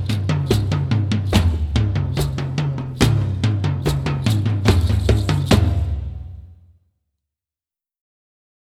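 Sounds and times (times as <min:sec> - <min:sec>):
percussion: 0:00.0 - 0:06.8.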